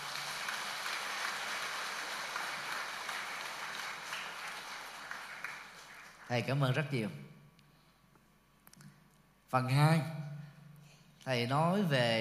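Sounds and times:
audience applause: 0:00.0 - 0:06.4
speech: 0:06.3 - 0:07.3, 0:09.5 - 0:10.2, 0:11.2 - 0:12.2.

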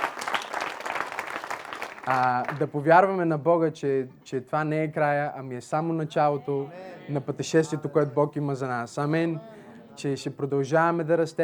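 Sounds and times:
audience applause: 0:00.0 - 0:02.6
speech: 0:02.1 - 0:11.4.

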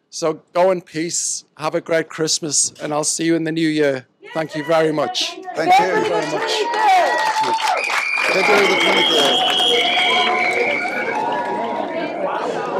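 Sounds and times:
speech: 0:00.1 - 0:10.0
large crowd cheering and applauding: 0:05.7 - 0:12.7.

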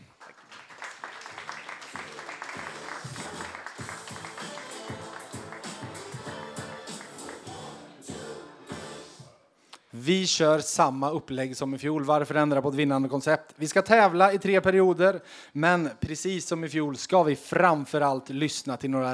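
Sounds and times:
audience applause: 0:00.0 - 0:07.9
speech: 0:10.0 - 0:19.1.

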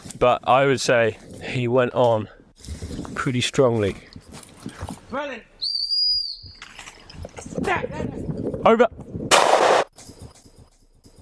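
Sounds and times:
speech: 0:00.2 - 0:02.4, 0:03.1 - 0:05.5, 0:07.7 - 0:09.0
shotgun shot at a woodcock: 0:09.3 - 0:09.9.

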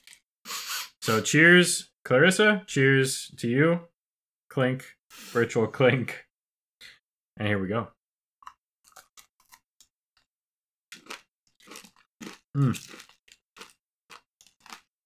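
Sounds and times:
speech: 0:01.0 - 0:03.9, 0:04.5 - 0:06.2, 0:07.4 - 0:08.0, 0:12.6 - 0:13.0
chewing and crunching an Oreo cookie: 0:08.4 - 0:09.9, 0:10.9 - 0:15.0.

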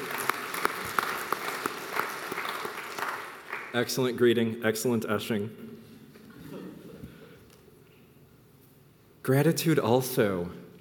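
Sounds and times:
audience applauding the ushers: 0:00.0 - 0:03.8
speech: 0:03.7 - 0:05.6, 0:09.3 - 0:10.6.

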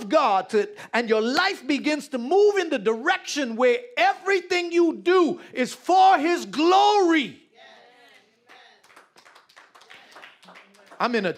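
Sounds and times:
speech: 0:00.1 - 0:07.4, 0:11.0 - 0:11.3
few audience claps: 0:08.4 - 0:11.3.

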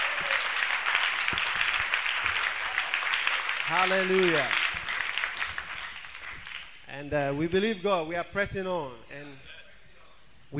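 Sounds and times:
crowd applauding: 0:00.0 - 0:06.9
speech: 0:03.7 - 0:04.6, 0:06.9 - 0:09.5.

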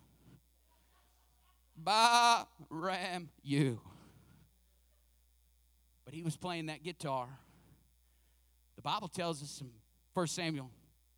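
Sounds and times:
sheep bleating: 0:01.8 - 0:02.5
speech: 0:01.8 - 0:03.9, 0:06.1 - 0:07.4, 0:08.8 - 0:10.8.

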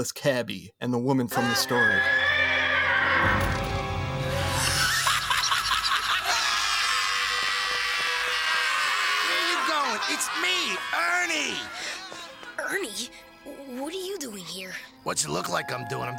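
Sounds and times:
speech: 0:00.0 - 0:02.5, 0:10.1 - 0:11.9, 0:12.7 - 0:16.1
horse neighing: 0:01.8 - 0:03.6
laughter: 0:04.5 - 0:12.7.

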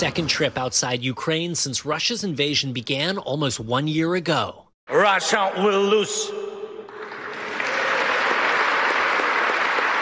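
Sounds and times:
speech: 0:00.0 - 0:06.4
applause: 0:06.9 - 0:09.9.

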